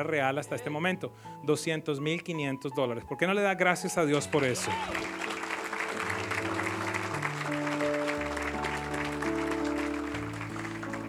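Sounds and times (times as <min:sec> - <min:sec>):
speech: 0:00.0 - 0:05.2
sustained organ or keyboard chords: 0:03.8 - 0:11.0
church audience applauding: 0:04.2 - 0:11.0.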